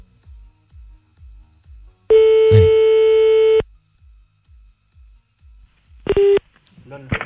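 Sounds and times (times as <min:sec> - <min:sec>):
long steady electronic telephone tone: 0:02.1 - 0:03.6, 0:06.1 - 0:06.4.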